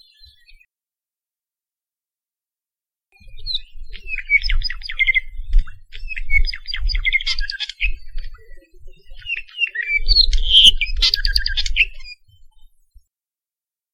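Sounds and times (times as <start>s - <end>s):
apapane song along Saddle Road in Hawaii: 3.2s - 12.3s.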